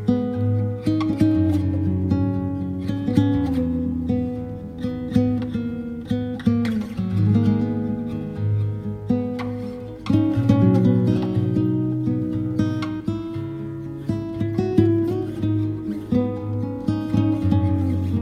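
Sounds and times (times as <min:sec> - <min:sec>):
Latino song on guitar: 0:00.0 - 0:18.2.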